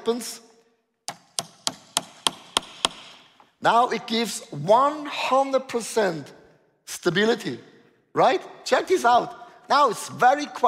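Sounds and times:
speech: 0.0s - 0.5s, 3.6s - 10.6s
hammer striking a nail: 1.1s - 3.3s.

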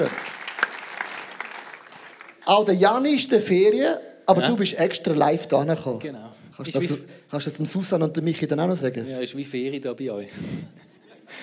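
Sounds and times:
speech: 0.0s - 0.3s, 2.5s - 11.4s
audience applause: 0.0s - 2.5s
laughter: 10.8s - 11.4s.

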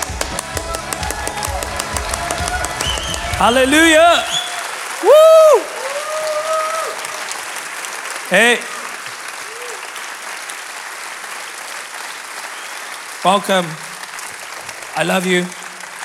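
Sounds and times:
voices shouting over clapping: 0.0s - 7.0s
crowd applauding: 0.0s - 16.0s
cheers and whoops: 0.1s - 7.7s, 8.5s - 10.0s
speech: 3.4s - 4.4s, 5.0s - 5.7s, 8.3s - 8.7s, 13.2s - 13.9s, 15.0s - 16.0s.

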